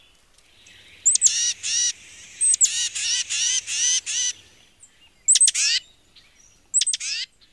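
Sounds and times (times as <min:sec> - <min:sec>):
Tufted Titmouse calling: 0:00.5 - 0:04.7, 0:05.3 - 0:05.9, 0:06.7 - 0:07.3.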